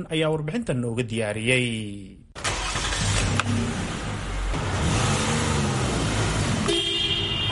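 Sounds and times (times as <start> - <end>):
speech: 0.0 - 2.2
vehicle engine rumble at a Somali-owned car repair garage in Melbourne: 2.4 - 6.9
car horn toot: 6.6 - 7.4.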